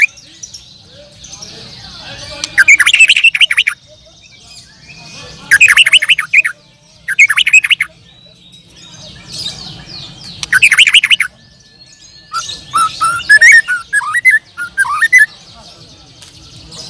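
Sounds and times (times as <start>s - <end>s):
bird rapid chirping: 0.0s - 15.4s.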